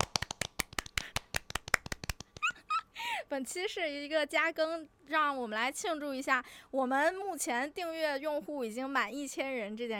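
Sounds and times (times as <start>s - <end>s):
hand clapping: 0.0s - 2.6s
speech: 3.3s - 9.9s.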